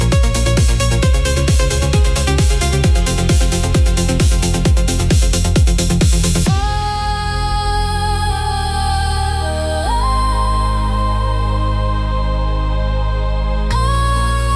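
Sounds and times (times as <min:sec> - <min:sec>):
music track at 130 BPM: 0:00.0 - 0:14.5.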